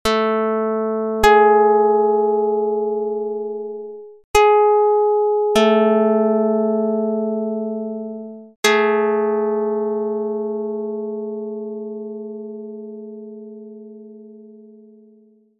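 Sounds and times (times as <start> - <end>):
plucked note: 0.0 - 15.5.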